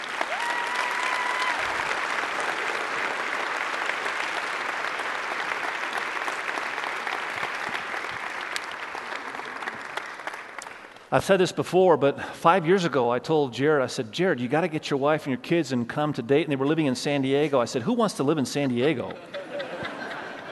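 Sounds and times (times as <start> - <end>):
church congregation clapping to welcome a pastor and his wife: 0.0 - 11.2
speech: 11.1 - 19.4
laughter: 18.5 - 20.5.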